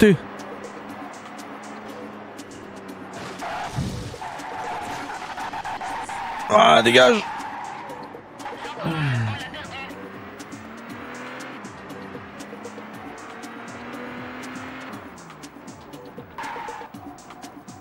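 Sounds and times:
speech: 0.0s - 0.3s, 6.5s - 7.3s
steady revving engine drone: 0.0s - 17.7s
Renault Laguna tire squeal in a racing video game: 0.2s - 17.7s.

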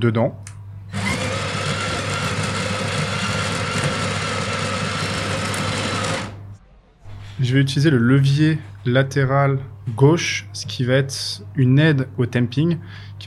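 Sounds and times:
speech: 0.0s - 0.5s, 7.4s - 13.2s
espresso machine grinder grinding coffee beans: 0.9s - 6.4s.

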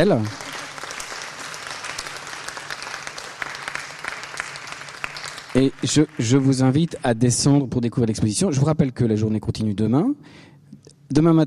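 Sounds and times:
speech: 0.0s - 0.4s, 5.6s - 11.4s
audience applause: 0.0s - 7.4s.

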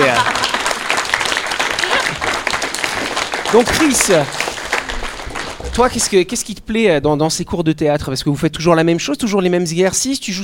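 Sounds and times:
applause: 0.0s - 6.1s
speech: 3.5s - 4.5s, 5.8s - 10.4s.

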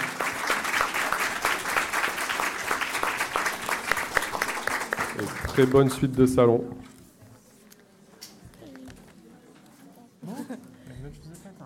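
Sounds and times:
crowd applauding: 0.0s - 6.1s
speech: 5.6s - 6.9s.

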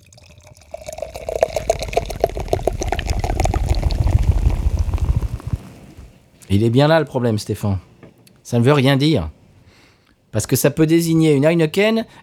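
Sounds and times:
steady rain pattering and splashing: 0.0s - 6.2s
low rumble of thunder: 1.1s - 6.2s
speech: 6.5s - 9.4s, 10.3s - 12.2s.

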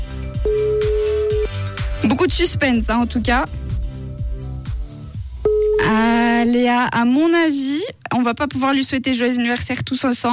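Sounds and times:
loud steady telephone beep: 0.4s - 1.5s, 5.5s - 6.1s
telephone tones, call not answered: 0.5s - 1.5s, 5.5s - 6.1s
speech: 2.1s - 3.6s, 5.8s - 10.3s.

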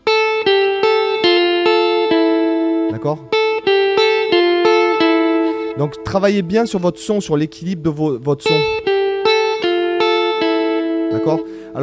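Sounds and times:
electric guitar played through effects: 0.0s - 11.8s
speech: 3.0s - 3.3s, 5.8s - 8.8s, 11.1s - 11.8s.

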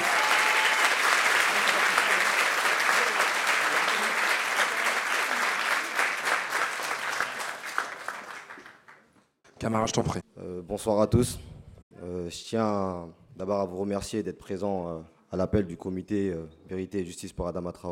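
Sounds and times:
audience applause: 0.0s - 9.1s
speech: 9.6s - 11.5s, 12.1s - 17.9s.

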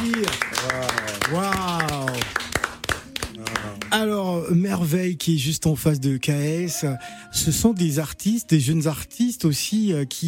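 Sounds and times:
crowd applause: 0.0s - 4.0s
speech: 4.0s - 10.2s.

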